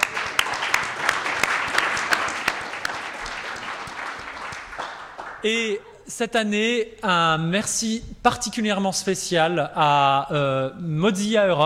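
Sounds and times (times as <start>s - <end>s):
audience applause: 0.0s - 5.8s
speech: 5.4s - 11.6s.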